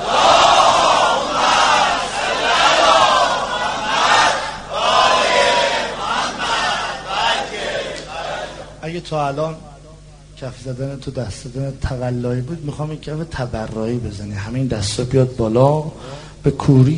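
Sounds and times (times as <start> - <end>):
crowd loudly chanting salawat: 0.0 - 8.8
speech: 9.0 - 9.7, 10.4 - 16.9.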